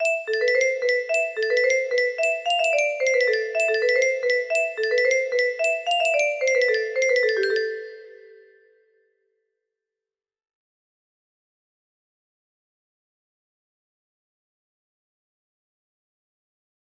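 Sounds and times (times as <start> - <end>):
music box melody: 0.0 - 8.7.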